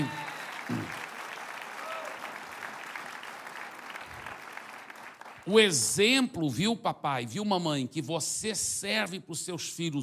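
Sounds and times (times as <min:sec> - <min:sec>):
audience applause: 0:00.0 - 0:05.5
speech: 0:05.5 - 0:10.0.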